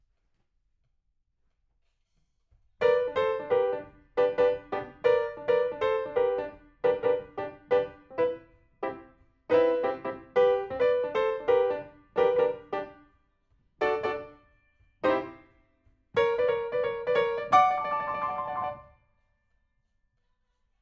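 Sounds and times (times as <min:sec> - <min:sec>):
rock and roll piano: 0:02.8 - 0:13.0, 0:13.8 - 0:14.4, 0:15.0 - 0:15.5, 0:16.2 - 0:18.9.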